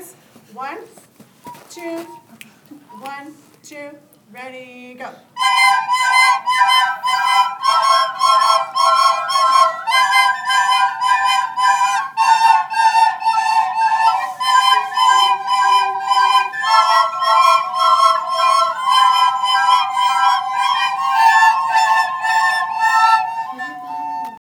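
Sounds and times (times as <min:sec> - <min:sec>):
two recorder parts playing: 0:05.4 - 0:24.4.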